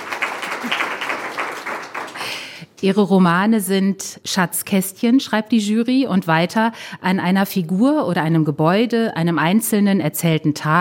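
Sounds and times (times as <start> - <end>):
applause for a writer receiving the German Literature Fund prize: 0.0 - 2.6
speech: 2.8 - 10.7.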